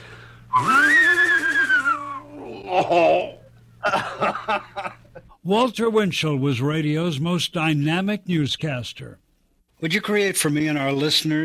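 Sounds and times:
man's voice imitating an English horse whinny: 0:00.5 - 0:03.4
laughter: 0:02.6 - 0:05.4
speech: 0:05.4 - 0:09.2, 0:09.8 - 0:11.4.

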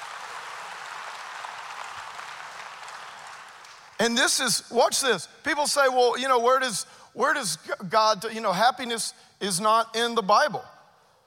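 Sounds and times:
audience clapping: 0:00.0 - 0:04.0
speech: 0:04.0 - 0:10.7.

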